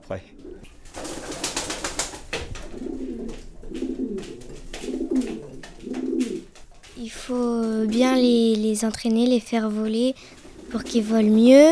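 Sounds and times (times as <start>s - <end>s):
speech: 0.1s - 0.5s, 7.1s - 11.7s
pigeons cooing in a loft: 0.2s - 7.0s, 10.1s - 11.7s.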